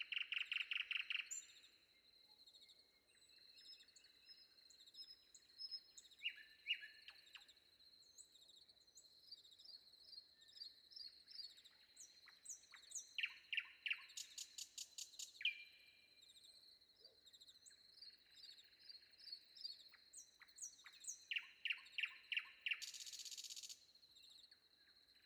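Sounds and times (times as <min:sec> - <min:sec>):
nightingale singing before dawn: 0:00.0 - 0:01.7, 0:05.0 - 0:07.4, 0:11.9 - 0:16.4, 0:18.2 - 0:23.8.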